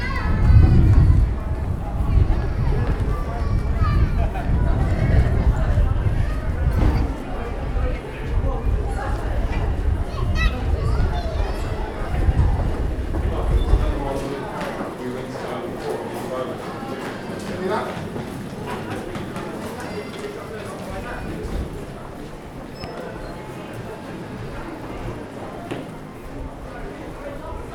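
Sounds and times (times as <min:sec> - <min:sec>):
heavy low rumble: 0:00.0 - 0:14.0
crowd chatter in a busy high street market: 0:00.0 - 0:27.7.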